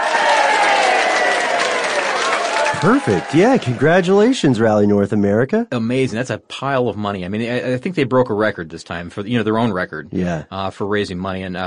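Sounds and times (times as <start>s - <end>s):
applause sound effect cue: 0.0s - 5.0s
speech: 2.8s - 11.6s.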